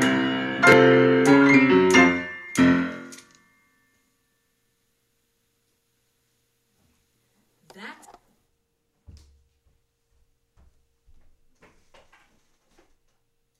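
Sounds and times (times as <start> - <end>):
Christmas song: 0.0 - 4.2.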